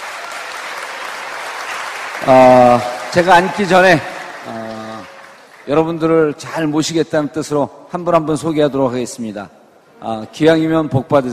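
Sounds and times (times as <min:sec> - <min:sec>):
crowd applauding: 0:00.0 - 0:06.4
speech: 0:02.2 - 0:04.6, 0:05.7 - 0:11.3.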